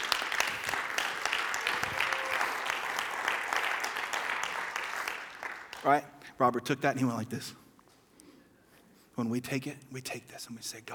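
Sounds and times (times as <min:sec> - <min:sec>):
audience applause: 0:00.0 - 0:06.0
speech: 0:05.8 - 0:07.6, 0:09.2 - 0:10.9.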